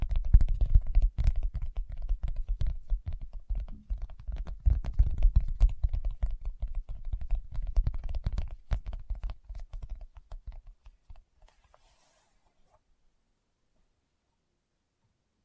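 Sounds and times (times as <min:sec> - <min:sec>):
fingertips tapping: 0:00.0 - 0:11.7.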